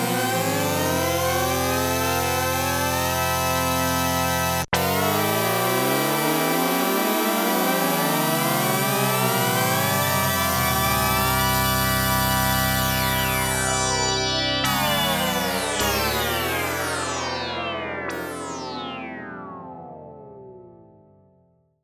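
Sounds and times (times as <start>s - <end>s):
Oberheim OB-8 synthesizer polyphonic portamento factory patch: 0.0s - 21.3s.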